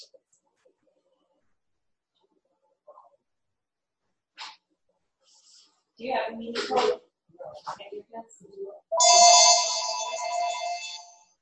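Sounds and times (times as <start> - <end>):
speech: 6.0 - 10.6
electronic phone ringtone: 9.0 - 11.1.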